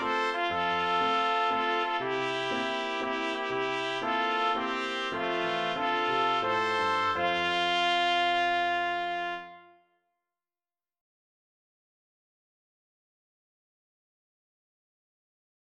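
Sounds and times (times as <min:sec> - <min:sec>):
trumpet duet: 0:00.0 - 0:09.8.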